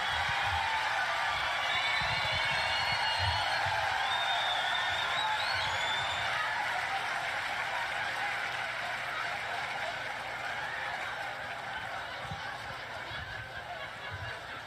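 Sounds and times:
whoops and whistles: 0:00.0 - 0:06.5
crowd cheering and applauding: 0:00.0 - 0:14.6
laughter: 0:02.2 - 0:14.6.

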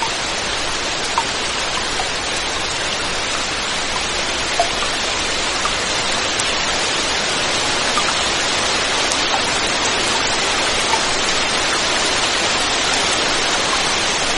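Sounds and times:
rain falling: 0:00.0 - 0:14.3.

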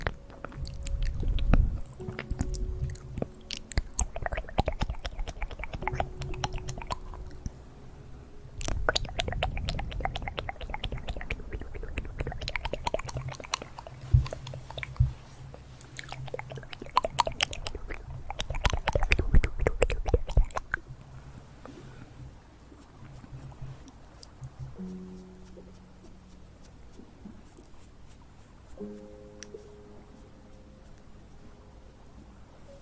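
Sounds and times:
fast mouth clicks, smacks and chewing-like noises: 0:00.0 - 0:07.6, 0:08.6 - 0:20.9
soft hiss: 0:00.0 - 0:18.3, 0:20.6 - 0:32.8.

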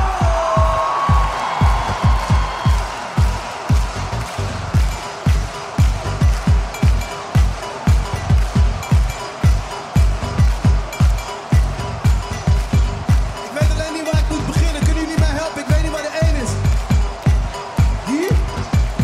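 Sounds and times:
crowd cheering and applauding: 0:00.0 - 0:19.0
pounding bass beat: 0:00.0 - 0:19.0.

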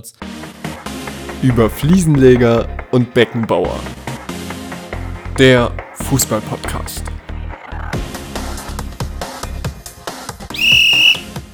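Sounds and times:
speech: 0:00.0 - 0:00.6, 0:01.4 - 0:04.0, 0:05.4 - 0:07.1
upbeat rhythmic music with punchy drums: 0:00.5 - 0:11.5
referee's kickoff whistle blast: 0:10.5 - 0:11.3.

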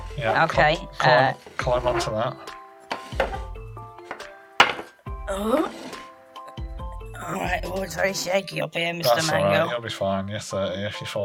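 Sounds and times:
speech: 0:00.2 - 0:03.3, 0:05.3 - 0:05.9, 0:07.2 - 0:11.2
wooden dining chairs stacked on each other: 0:01.4 - 0:06.1.

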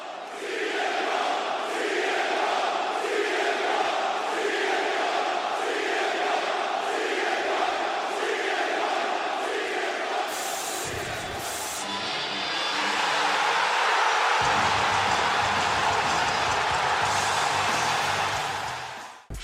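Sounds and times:
arena crowd chanting: 0:00.0 - 0:19.3
huge arena crowd cheering and screaming: 0:10.1 - 0:19.3.

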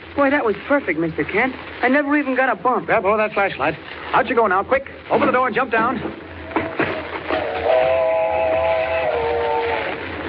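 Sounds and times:
speech: 0:00.2 - 0:06.2
train approaching with a rumble: 0:05.1 - 0:10.2
multi-tone train whistle blast: 0:07.3 - 0:09.9.

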